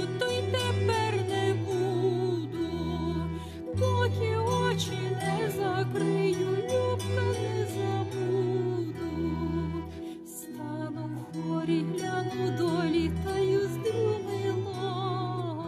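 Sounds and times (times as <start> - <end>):
Ukrainian baroque love song from the 18th century: 0.0 - 15.6.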